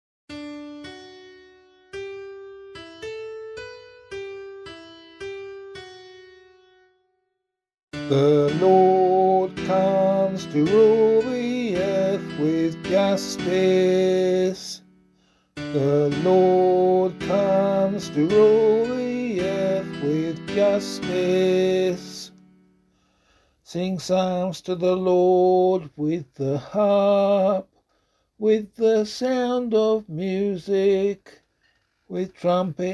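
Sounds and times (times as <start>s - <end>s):
psalm in C sung by voice: 8.0s - 14.9s, 15.6s - 22.4s, 23.6s - 27.8s, 28.4s - 31.4s, 32.1s - 32.9s.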